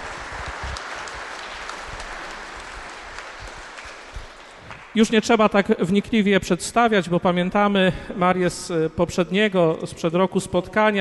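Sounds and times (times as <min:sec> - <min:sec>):
audience applauding to welcome a speaker at St. Joseph's: 0:00.0 - 0:05.0
speech: 0:05.0 - 0:10.9.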